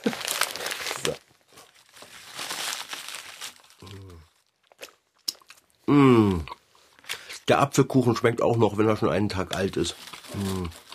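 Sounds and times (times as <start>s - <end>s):
day-old newspaper pages rustling: 0.0s - 3.8s, 9.4s - 10.9s
speech: 7.5s - 10.8s.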